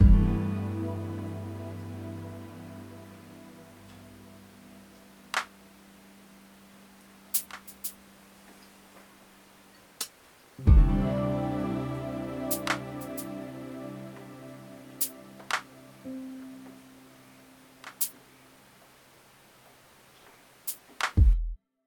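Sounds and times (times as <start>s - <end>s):
music loop: 0.0s - 8.1s, 10.6s - 18.2s.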